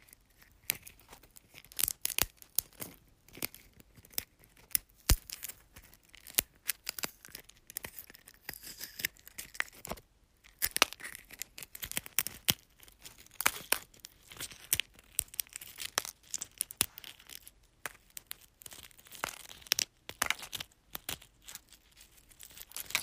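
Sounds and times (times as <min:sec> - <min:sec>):
eggshells crunching: 0:00.3 - 0:23.0.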